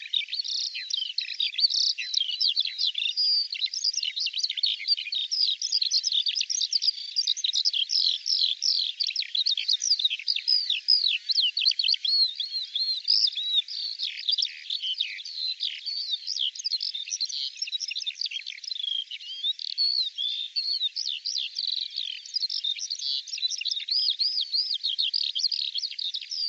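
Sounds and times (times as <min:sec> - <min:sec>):
bird singing: 0:00.0 - 0:26.4.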